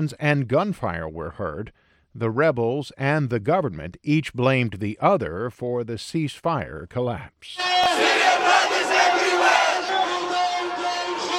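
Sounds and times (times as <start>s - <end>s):
speech: 0.0s - 8.6s
crowd of protesters chanting: 7.6s - 11.3s.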